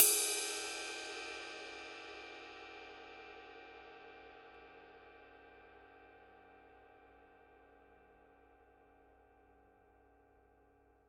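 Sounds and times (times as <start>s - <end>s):
ride cymbal body: 0.0s - 4.9s.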